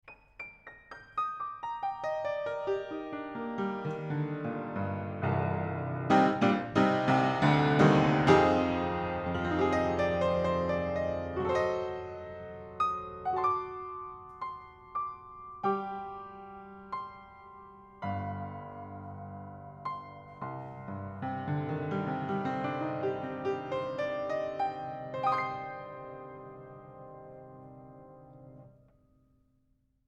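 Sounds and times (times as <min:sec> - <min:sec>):
piano with panels off: 0:00.0 - 0:29.5.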